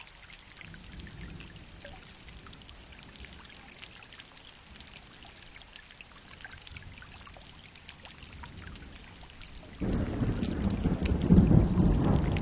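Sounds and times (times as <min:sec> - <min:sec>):
thunderstorm: 0:09.8 - 0:12.4.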